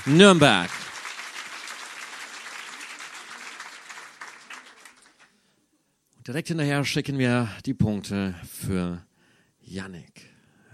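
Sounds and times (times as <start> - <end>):
speech: 0.0 - 0.8, 6.3 - 10.3
audience applause: 0.0 - 5.3.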